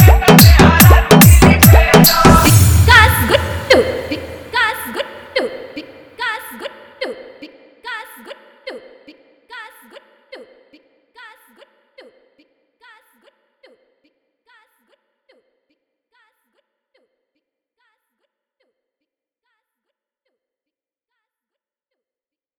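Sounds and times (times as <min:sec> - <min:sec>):
Bhojpuri song: 0:00.0 - 0:05.4.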